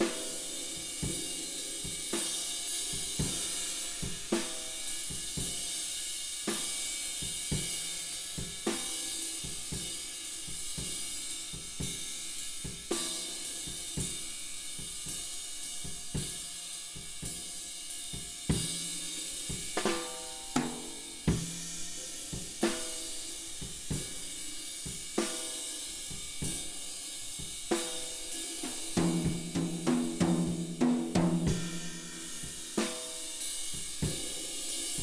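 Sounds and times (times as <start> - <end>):
drum kit: 0.0 - 35.0.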